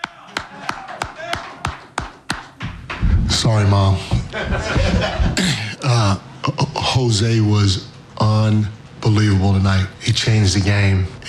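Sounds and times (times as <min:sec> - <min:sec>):
clapping: 0:00.0 - 0:02.6
speech: 0:03.4 - 0:11.2
laughter: 0:04.1 - 0:05.9.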